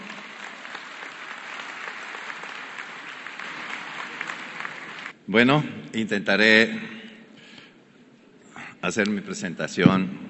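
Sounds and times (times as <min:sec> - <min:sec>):
audience applause: 0:00.0 - 0:05.2
speech: 0:05.3 - 0:07.0, 0:08.8 - 0:10.2.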